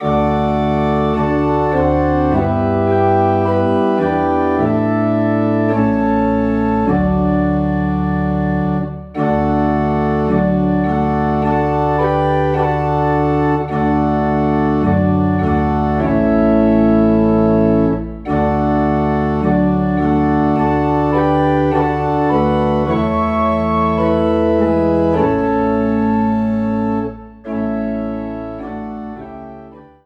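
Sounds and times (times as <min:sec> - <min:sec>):
organ playing in D: 0:00.0 - 0:30.0.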